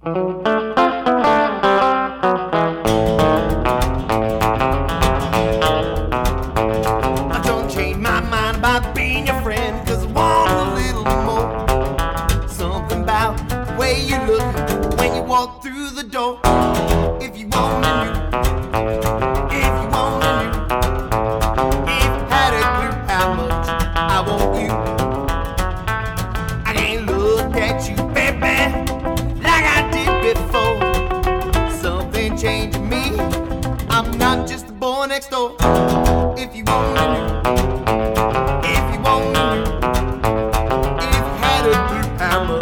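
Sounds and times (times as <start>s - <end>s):
speech: 0.0s - 0.3s
recorded song played on air: 0.0s - 42.6s.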